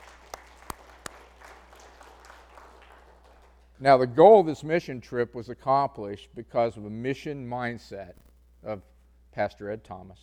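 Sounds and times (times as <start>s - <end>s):
audience hand clapping applause: 0.0s - 3.8s
speech: 3.8s - 10.2s.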